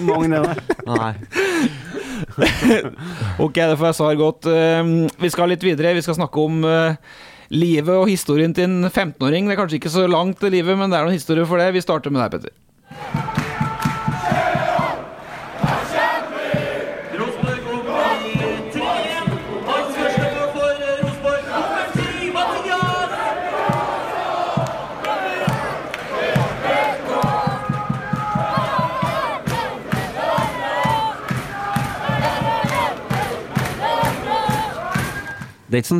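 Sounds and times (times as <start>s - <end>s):
laughter: 0.0s - 3.0s
speech: 0.0s - 13.2s, 35.7s - 35.9s
large stadium crowd singing a football chant: 12.9s - 35.4s
steady rhythmic pulse: 13.0s - 35.4s.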